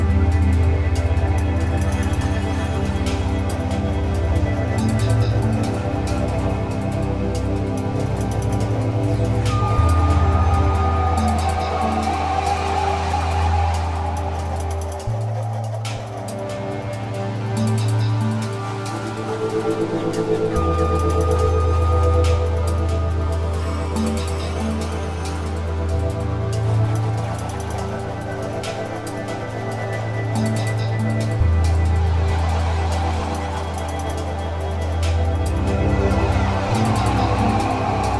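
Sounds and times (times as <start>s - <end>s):
energizing ambience: 0.0s - 38.1s.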